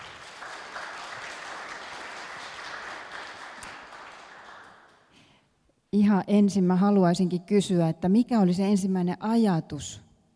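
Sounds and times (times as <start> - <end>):
small round of applause: 0.0 - 5.2
speech: 5.9 - 10.0.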